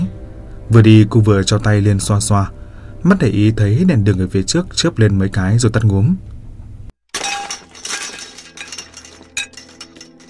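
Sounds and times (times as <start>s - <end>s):
speech: 0.7s - 6.3s
loud shattering crash of breaking glass on a deserted street: 7.1s - 10.2s
tinkling clinking glass shards: 7.2s - 10.2s.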